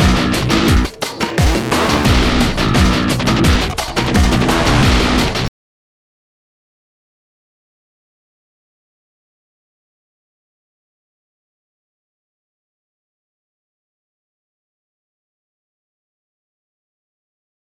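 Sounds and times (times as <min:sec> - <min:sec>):
fight music loop: 0:00.0 - 0:05.5.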